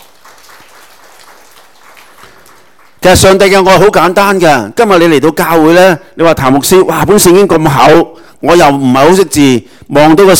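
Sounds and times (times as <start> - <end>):
church congregation applause during a service: 0.0 - 4.0
speech: 3.0 - 10.3.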